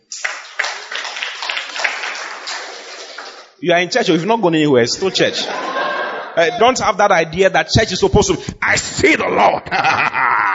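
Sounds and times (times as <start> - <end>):
audience clapping: 0.0 - 3.6
speech: 3.6 - 5.8, 6.4 - 10.3
laughter: 5.0 - 6.8, 9.6 - 10.5.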